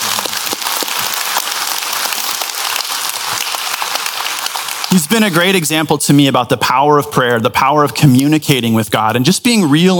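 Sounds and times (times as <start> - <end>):
audience applause: 0.0 - 5.8
speech: 5.0 - 9.9.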